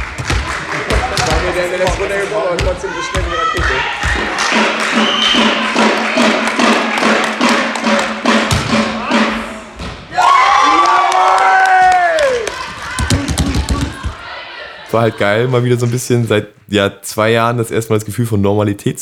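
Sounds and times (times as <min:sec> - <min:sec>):
volleyball match crowd chatter and cheering in a sports hall: 0:00.0 - 0:16.3
speech: 0:01.5 - 0:06.6, 0:14.9 - 0:18.9
crowd shouting and whistling: 0:02.8 - 0:07.2, 0:08.8 - 0:15.3.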